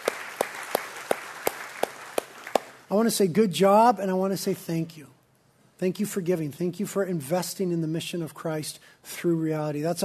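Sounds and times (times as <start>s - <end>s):
audience applauding: 0.0s - 2.9s
speech: 2.9s - 5.1s, 5.8s - 10.0s.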